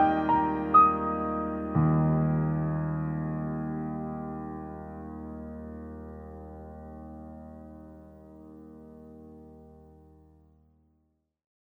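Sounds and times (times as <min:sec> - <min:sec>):
piano beat: 0:00.0 - 0:08.4.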